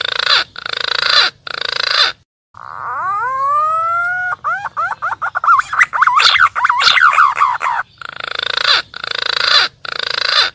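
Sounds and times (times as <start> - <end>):
green pigeon calling, used as a lure for wild birds: 0.0 - 10.5.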